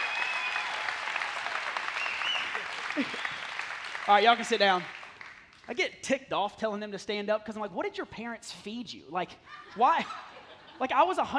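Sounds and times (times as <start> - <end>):
audience applause and cheering: 0.0 - 5.5
speech: 4.1 - 5.0, 5.7 - 10.2, 10.8 - 11.3.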